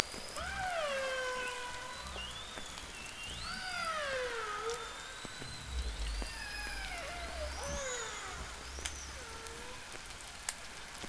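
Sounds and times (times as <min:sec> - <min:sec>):
hydrophone underwater sound at lime kiln: 0:00.2 - 0:10.4.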